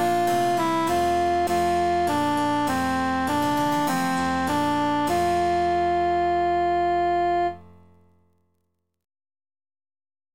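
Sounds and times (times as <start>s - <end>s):
emphasized cantus melody: 0.0s - 8.0s.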